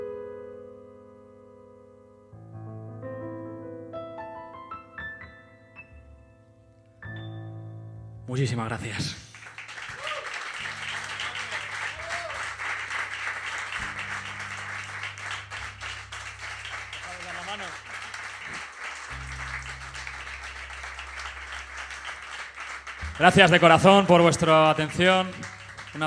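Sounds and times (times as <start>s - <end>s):
speech: 8.3s - 9.3s, 23.2s - 26.0s
audience applause after a concert: 9.2s - 26.0s.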